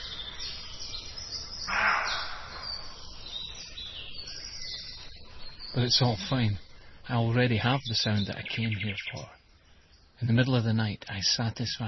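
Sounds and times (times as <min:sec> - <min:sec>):
roe deer barking: 0:01.7 - 0:03.0
speech: 0:05.8 - 0:09.4, 0:10.2 - 0:11.8.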